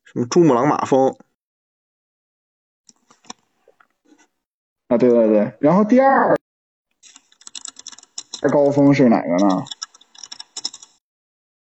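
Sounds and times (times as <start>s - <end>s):
speech: 0.1s - 1.2s, 4.9s - 6.4s, 8.4s - 9.8s
keyboard typing: 7.0s - 8.7s, 9.4s - 11.0s.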